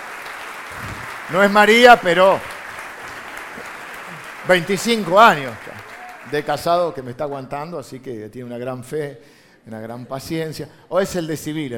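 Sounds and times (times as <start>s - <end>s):
audience applause: 0.0s - 6.7s
speech: 0.7s - 2.5s, 4.5s - 5.7s, 6.3s - 11.7s.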